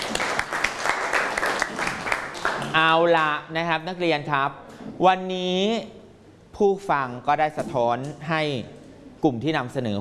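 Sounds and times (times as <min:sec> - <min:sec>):
students clapping for themselves: 0:00.0 - 0:02.8
speech: 0:02.8 - 0:06.0, 0:06.6 - 0:09.9.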